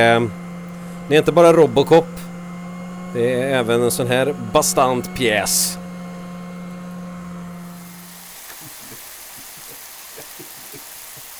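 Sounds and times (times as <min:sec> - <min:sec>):
speech: 0:00.0 - 0:00.4, 0:01.1 - 0:02.2, 0:03.1 - 0:05.8
meat frying: 0:07.6 - 0:11.3.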